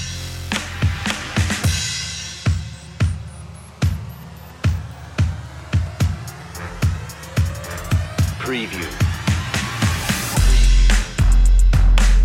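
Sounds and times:
drums and bass: 0.0s - 12.2s.

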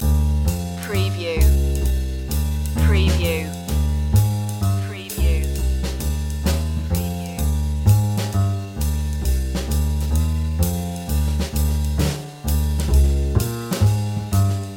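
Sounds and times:
fresh jazz loop: 0.0s - 14.7s.

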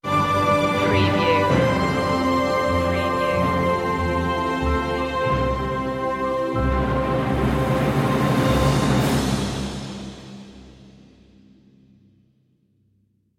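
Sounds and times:
orchestral stinger: 0.1s - 10.8s.

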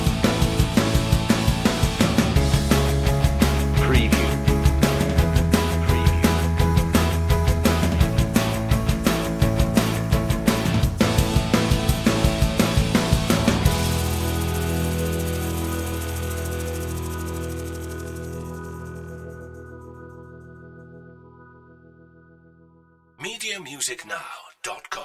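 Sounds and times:
carefree backing music with no melody: 0.0s - 17.1s.

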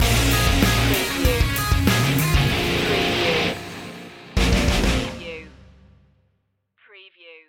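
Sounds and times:
crunch time music stinger: 0.0s - 5.2s.

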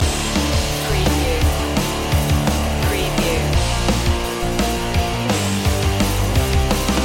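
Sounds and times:
8-bit rocktronic loop: 0.0s - 7.0s.

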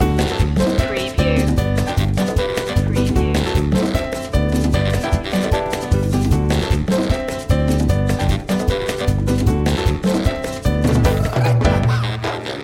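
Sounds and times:
merengue music loop: 0.0s - 12.6s.

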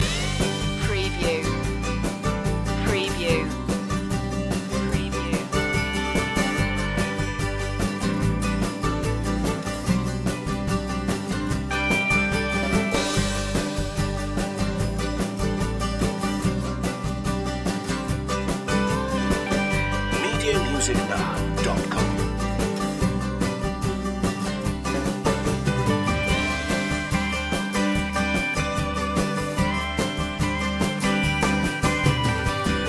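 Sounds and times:
mandolin loop: 0.0s - 32.8s.

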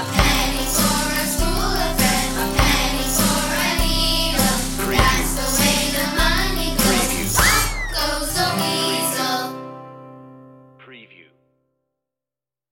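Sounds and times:
children singing together: 0.0s - 9.7s.

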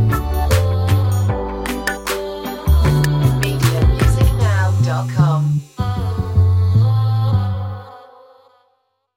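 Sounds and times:
warm groovy chillout electro track: 0.0s - 6.7s
indie stylish vocals: 0.0s - 8.9s.

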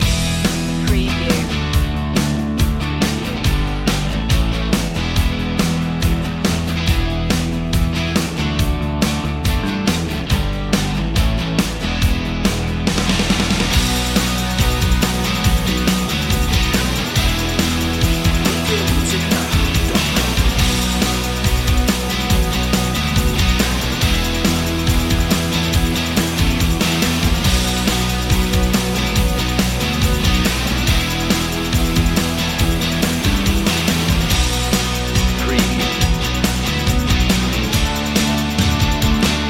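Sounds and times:
rolling loop: 0.0s - 9.0s, 10.1s - 39.4s.

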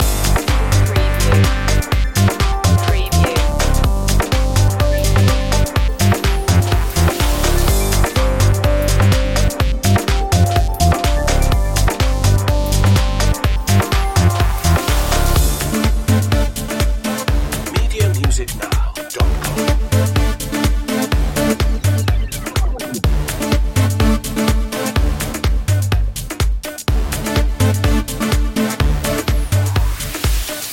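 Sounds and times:
bass loop: 0.0s - 30.2s.

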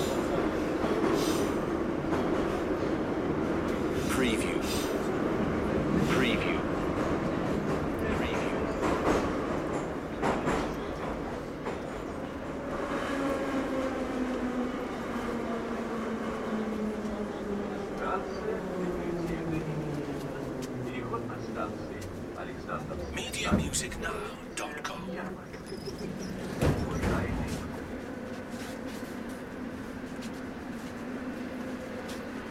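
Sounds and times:
metro train ride in Moscow: 0.0s - 32.4s.

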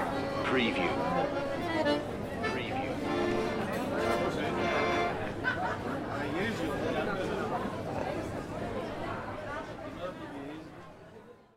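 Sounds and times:
accordion playing: 0.0s - 5.4s
city street ambience: 0.0s - 11.4s.

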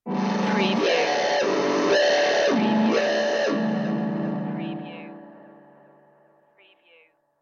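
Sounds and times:
music stinger: 0.1s - 5.6s.

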